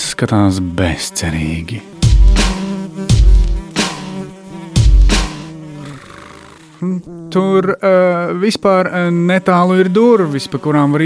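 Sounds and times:
speech: 0.2s - 2.0s, 6.8s - 11.0s
fly buzzing: 0.9s - 11.0s
sharp thuds: 2.0s - 4.2s, 4.8s - 5.4s.

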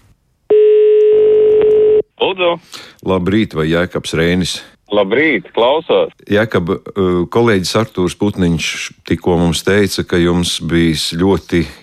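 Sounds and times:
telephone dial tone: 0.5s - 2.0s
speech: 2.4s - 11.8s.

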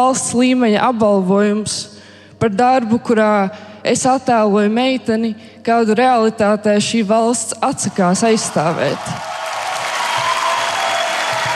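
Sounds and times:
speech: 0.0s - 9.3s
large audience applause during a standing ovation in a hall: 8.2s - 11.5s.

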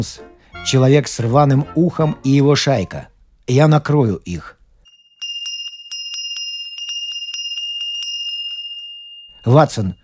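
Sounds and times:
speech: 0.0s - 4.6s, 9.4s - 10.0s
doorbell ringing: 4.9s - 10.0s.

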